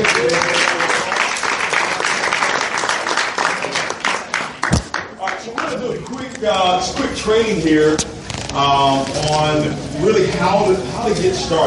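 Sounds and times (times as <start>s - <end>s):
audience applause: 0.0s - 5.7s
speech: 6.4s - 11.6s.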